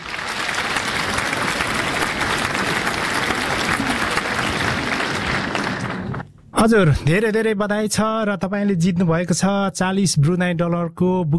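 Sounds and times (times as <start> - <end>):
celebratory applause for a prize-draw winner: 0.0 - 6.3
speech: 6.6 - 11.3.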